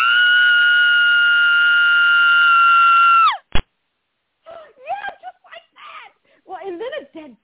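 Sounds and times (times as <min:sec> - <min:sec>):
blood-curdling scream sound effect: 0:00.0 - 0:03.5.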